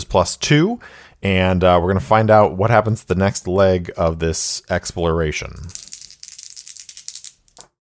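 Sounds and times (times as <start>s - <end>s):
speech: 0.1s - 5.8s
dice rattling and clattering: 5.7s - 7.7s.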